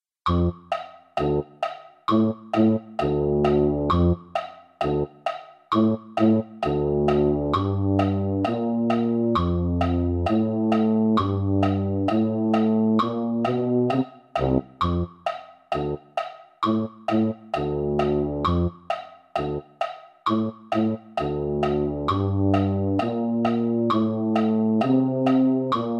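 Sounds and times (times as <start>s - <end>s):
tuba playing a Christmas classics medley: 0.3s - 19.7s, 20.3s - 25.9s.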